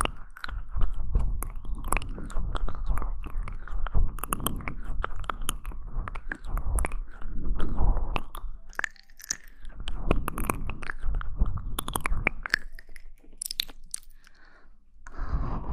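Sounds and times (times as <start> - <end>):
mouth sounds: 0.0 - 14.4
low rumble: 0.1 - 8.9, 9.5 - 12.6.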